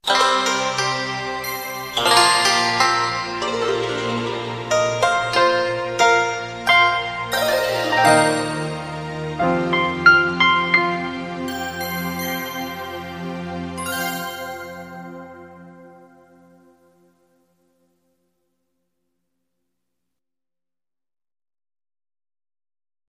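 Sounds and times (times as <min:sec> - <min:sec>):
oriental music interlude: 0:00.0 - 0:17.3.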